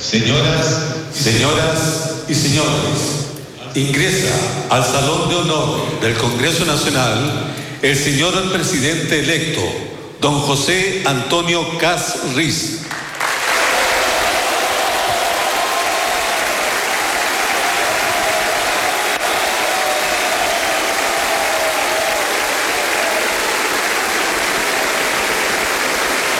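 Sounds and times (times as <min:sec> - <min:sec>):
speech: 0:00.0 - 0:13.0
thunderous applause from a large crowd in an indoor hall: 0:12.9 - 0:26.3.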